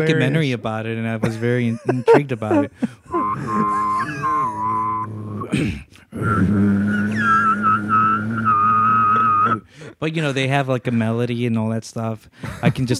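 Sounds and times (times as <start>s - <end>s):
speech: 0.0s - 4.4s, 5.5s - 8.0s, 9.5s - 12.9s
laughter: 1.2s - 5.1s, 6.9s - 10.4s
voice holding a low drone with whistle-like overtone: 2.0s - 5.6s, 6.2s - 9.7s.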